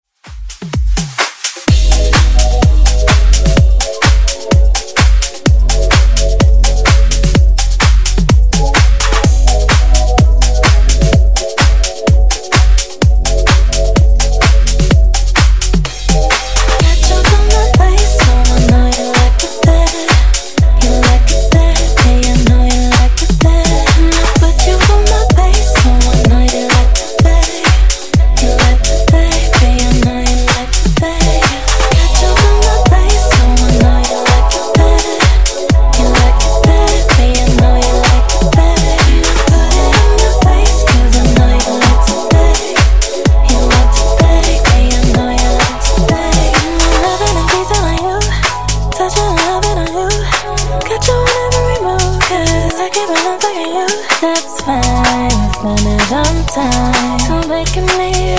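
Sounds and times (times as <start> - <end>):
funk nu-disco music at 127 BPM: 0.2 - 58.3.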